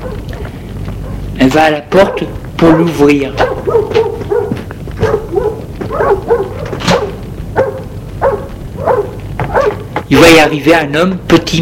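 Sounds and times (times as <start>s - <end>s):
dog barking in the yard: 0.0s - 0.3s, 1.0s - 1.3s, 2.0s - 2.4s, 3.4s - 9.9s
speech: 1.4s - 4.1s, 10.1s - 11.6s.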